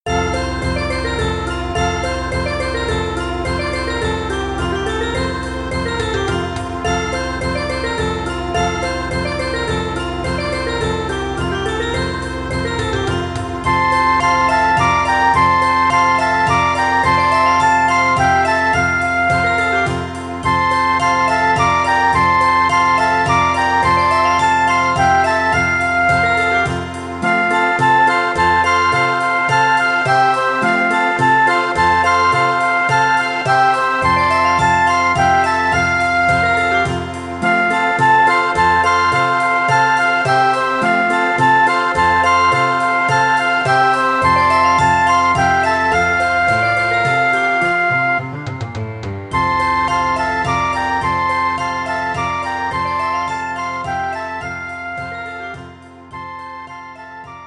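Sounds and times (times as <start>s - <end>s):
children's song backing track: 0.1s - 57.4s.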